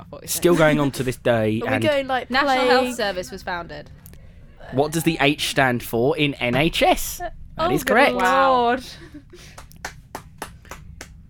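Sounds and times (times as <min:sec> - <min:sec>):
speech: 0:00.1 - 0:04.0, 0:04.6 - 0:09.6
hand clapping: 0:09.5 - 0:11.2.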